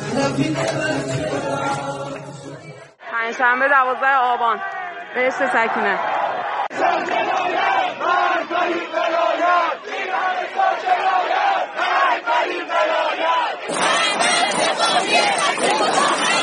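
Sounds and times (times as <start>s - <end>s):
speech: 0.2s - 1.3s, 3.3s - 11.3s
roaring crowd shouting angry slogans: 4.6s - 16.4s.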